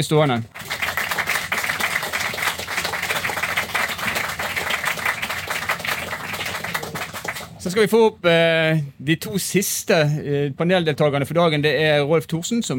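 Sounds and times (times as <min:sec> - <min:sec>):
speech: 0:00.0 - 0:00.6, 0:07.6 - 0:12.7
audience applause: 0:00.5 - 0:07.6.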